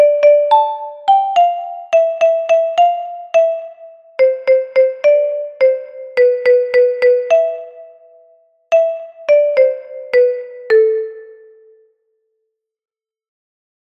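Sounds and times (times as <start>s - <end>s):
kalimba: 0.0s - 7.9s, 8.7s - 11.6s.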